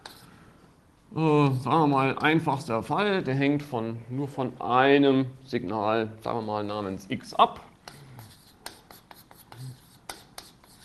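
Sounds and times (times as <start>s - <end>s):
handwriting as a lecturer writes out a formula: 0.0s - 0.3s, 7.9s - 10.8s
speech: 1.2s - 7.7s.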